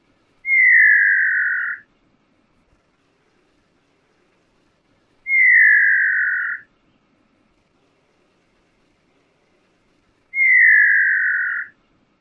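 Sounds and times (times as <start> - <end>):
bird song: 0.4 - 1.9, 5.2 - 7.1, 10.3 - 11.8.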